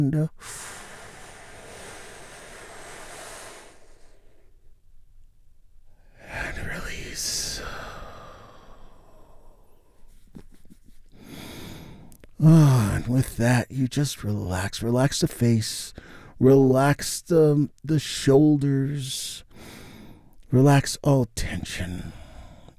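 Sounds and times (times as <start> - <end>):
speech: 0.0 - 0.8, 12.4 - 19.8, 20.5 - 22.2
slow deep breath drawn for relaxation: 0.3 - 4.8, 5.9 - 10.1, 11.1 - 12.8, 15.9 - 16.4, 19.5 - 20.3, 22.0 - 22.7.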